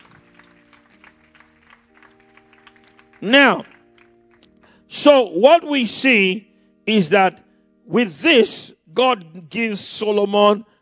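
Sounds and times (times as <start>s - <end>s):
audience clapping: 0.0s - 4.6s
speech: 3.2s - 3.7s, 4.9s - 10.7s.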